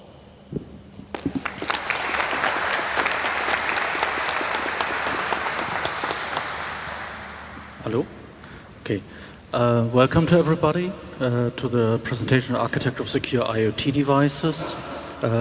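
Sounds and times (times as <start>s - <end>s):
audience applause: 1.1s - 7.9s
speech: 8.9s - 15.3s.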